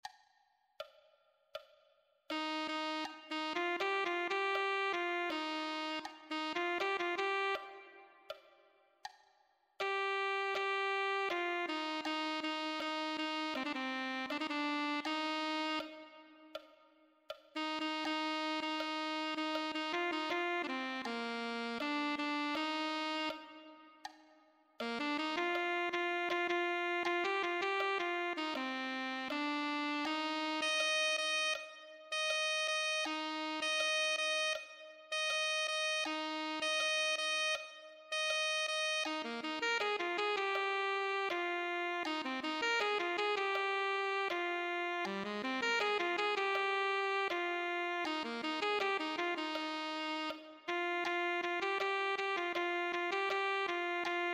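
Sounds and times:
alto saxophone: 0:02.3 - 0:08.5, 0:09.8 - 0:16.7, 0:17.6 - 0:24.2, 0:24.8 - 0:54.3.

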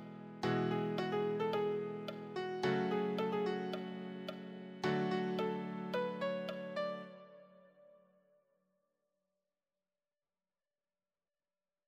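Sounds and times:
easy solo piano: 0:00.0 - 0:07.9.

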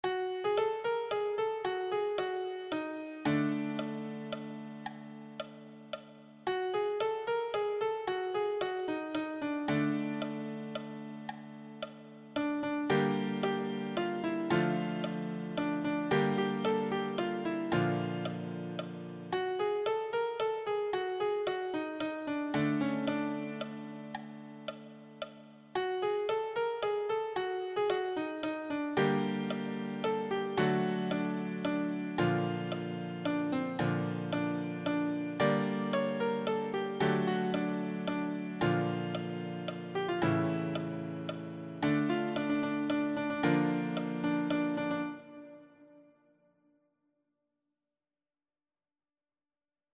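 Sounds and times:
easy solo piano: 0:00.0 - 0:46.0.

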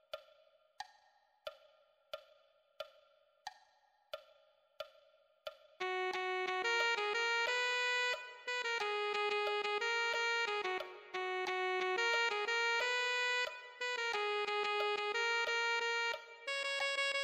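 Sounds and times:
alto saxophone: 0:05.8 - 0:17.2.

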